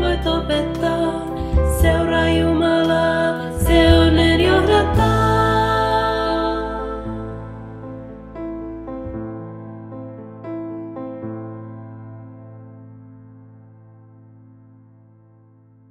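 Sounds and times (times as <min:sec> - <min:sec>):
Finnish song: 0:00.0 - 0:09.2.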